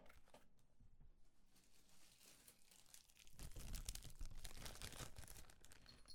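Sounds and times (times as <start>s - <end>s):
paper or plastic package tearing open: 2.1s - 5.9s.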